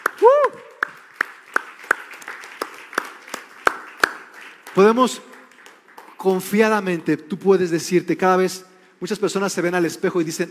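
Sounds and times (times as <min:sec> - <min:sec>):
audience applauding: 0:00.0 - 0:07.0
speech: 0:04.8 - 0:05.4, 0:06.2 - 0:10.5.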